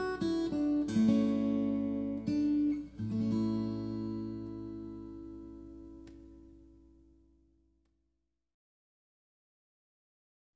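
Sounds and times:
ricercar on steel string guitar: 0.0s - 7.1s.

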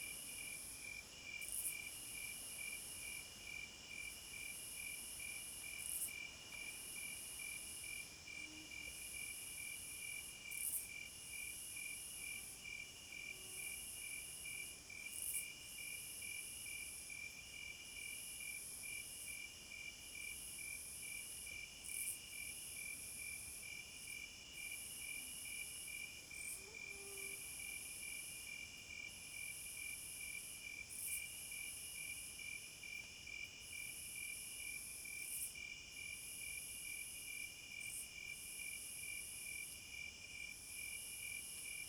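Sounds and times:
cricket chorus: 0.2s - 41.8s
high sustained insect drone: 24.9s - 28.6s.

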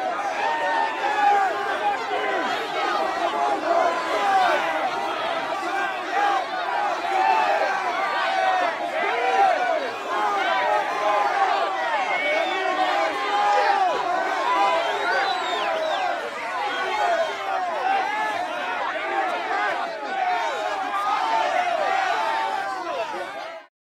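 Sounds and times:
riot crowd yelling outdoors: 0.0s - 23.7s.

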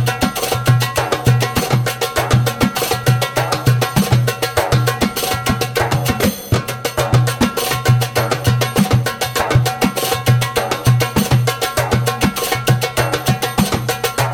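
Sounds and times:
fast djembe rhythm: 0.0s - 14.3s.

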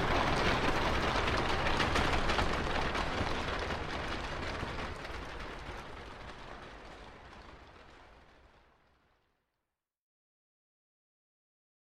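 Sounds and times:
horse-drawn carriage passing slowly: 0.0s - 7.7s.

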